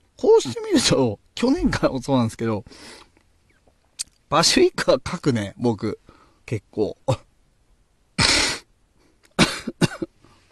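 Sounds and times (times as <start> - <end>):
speech: 0.4 - 3.0, 4.3 - 7.3
person with a congested runny nose coughing: 9.4 - 10.2.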